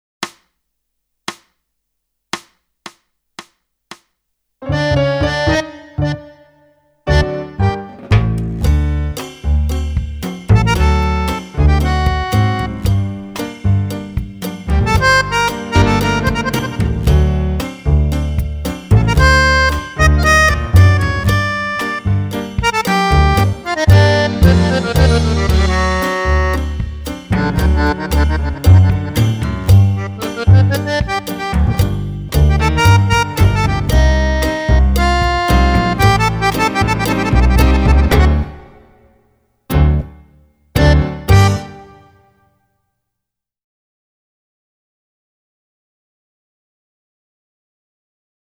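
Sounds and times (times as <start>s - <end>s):
tango music: 4.6s - 38.8s, 39.7s - 40.2s, 40.8s - 42.1s.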